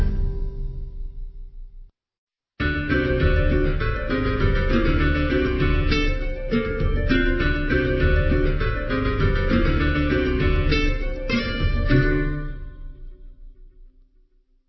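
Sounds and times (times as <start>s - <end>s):
MIDI music: 2.6s - 13.7s.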